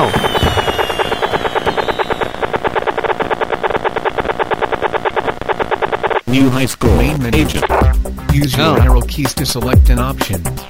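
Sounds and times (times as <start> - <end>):
game fireworks sound effect: 0.0 - 6.1
speech: 6.3 - 7.8, 8.4 - 10.6.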